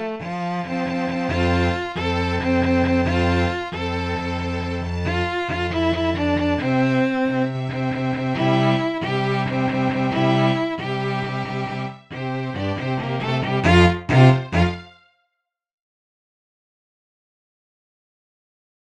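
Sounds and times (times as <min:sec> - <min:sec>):
bass part of a quartet: 0:00.0 - 0:15.0.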